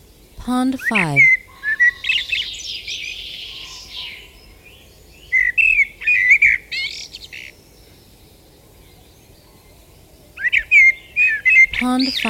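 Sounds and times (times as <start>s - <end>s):
Common blackbird song: 0.0s - 12.2s
speech: 0.4s - 1.4s, 11.8s - 12.2s.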